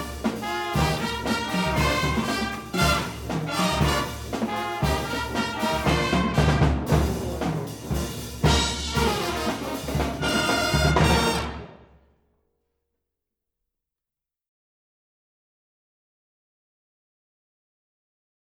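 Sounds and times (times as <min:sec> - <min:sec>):
pep band playing funk: 0:00.0 - 0:11.8.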